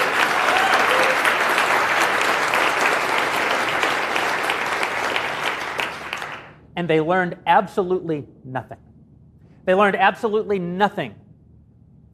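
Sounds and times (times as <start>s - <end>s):
audience applause: 0.0s - 6.6s
speech: 6.8s - 8.9s, 9.6s - 11.2s.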